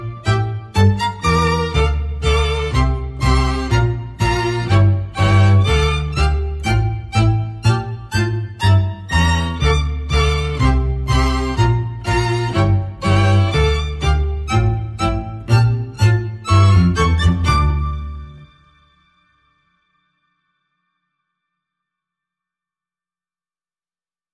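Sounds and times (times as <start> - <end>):
resolute string music: 0.0 - 19.3.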